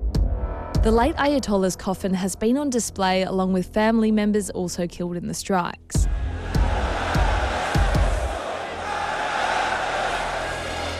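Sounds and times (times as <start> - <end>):
speech: 0.8 - 6.2
large crowd of mourners chanting: 6.0 - 10.9.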